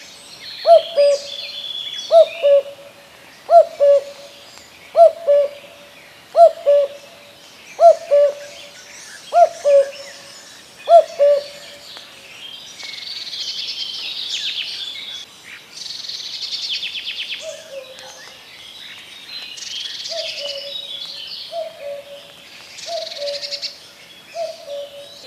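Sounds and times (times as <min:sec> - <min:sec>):
common cuckoo giving two-note cu-coo calls: 0:00.6 - 0:12.1, 0:17.4 - 0:18.4, 0:20.1 - 0:25.2.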